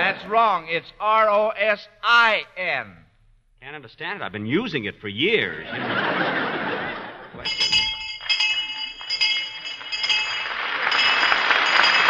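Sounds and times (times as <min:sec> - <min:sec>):
audience laughing and chuckling: 0:00.0 - 0:00.7, 0:05.5 - 0:07.5
speech: 0:00.0 - 0:03.0, 0:03.6 - 0:07.8
bright ringing bell: 0:07.4 - 0:12.0.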